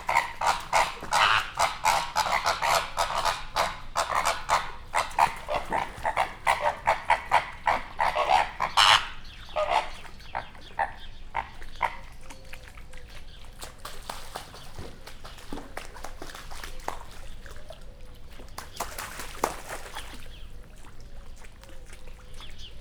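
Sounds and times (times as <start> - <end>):
pink flamingo calls: 0.0 - 12.2.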